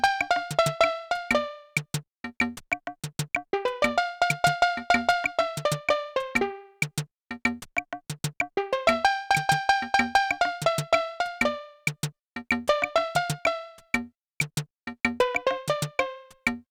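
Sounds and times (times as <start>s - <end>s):
retro calypso music aircheck: 0.0s - 2.0s, 3.1s - 7.0s, 8.2s - 12.1s, 12.7s - 13.9s, 14.5s - 16.6s.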